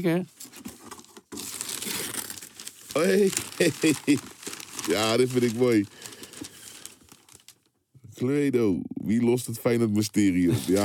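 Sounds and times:
speech: 0:00.0 - 0:00.6, 0:03.0 - 0:06.0, 0:08.2 - 0:10.8
wrapping paper tearing and crinkling as a gift is unwrapped: 0:00.4 - 0:07.7
laughter: 0:03.6 - 0:04.2, 0:10.5 - 0:10.8.

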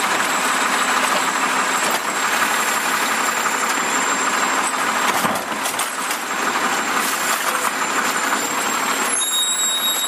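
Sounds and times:
garbage truck engine roar: 0:00.0 - 0:10.0.

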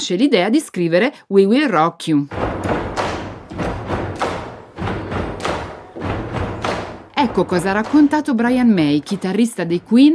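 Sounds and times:
speech: 0:00.0 - 0:02.4, 0:07.2 - 0:10.1
feet stomping in rhythm: 0:02.3 - 0:09.6
hands clapping in rhythm: 0:02.6 - 0:07.1.

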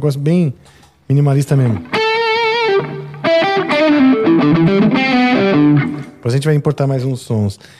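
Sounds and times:
speech: 0:00.0 - 0:01.9, 0:04.4 - 0:07.7
crunchy distorted electric guitar through a mini amp: 0:01.8 - 0:06.2.

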